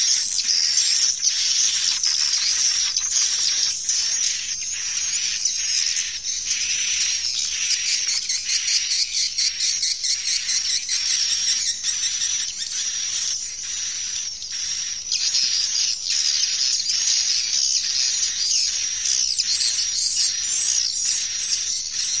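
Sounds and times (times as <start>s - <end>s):
swiftlet chatter: 0.0s - 22.1s.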